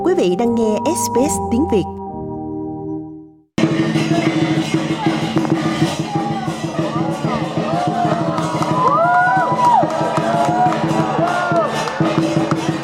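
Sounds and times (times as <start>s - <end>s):
speech: 0.2s - 2.0s
crowd voices at a Lunar New Year fair in Richmond, Melbourne: 4.0s - 12.8s.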